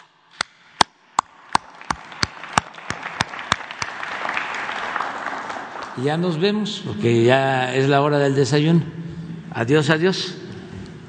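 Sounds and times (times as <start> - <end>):
audience applause: 1.4 - 6.3
speech: 6.0 - 9.0, 9.6 - 10.4.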